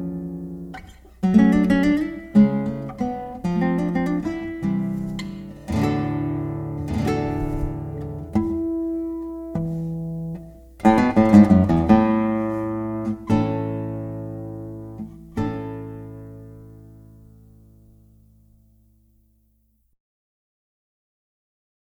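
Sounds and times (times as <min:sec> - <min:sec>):
classical guitar: 0:00.0 - 0:19.9.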